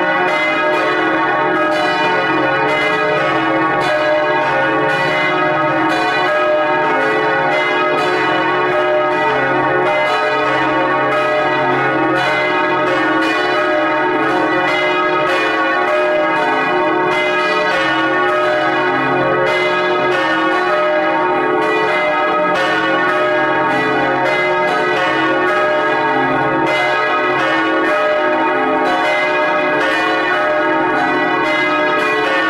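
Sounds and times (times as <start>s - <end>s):
church bells ringing in full peal: 0.0s - 32.4s.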